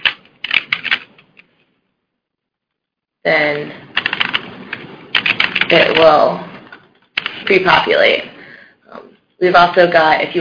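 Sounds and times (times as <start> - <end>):
typing on a computer keyboard: 0.0 - 1.3, 4.0 - 6.1
speech: 3.2 - 3.9, 5.7 - 6.5, 7.5 - 8.3, 9.4 - 10.4.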